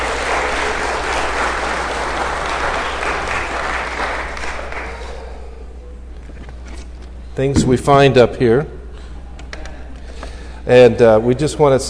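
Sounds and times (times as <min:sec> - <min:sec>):
round of applause: 0:00.0 - 0:05.2
speech: 0:07.4 - 0:08.8, 0:10.7 - 0:11.8.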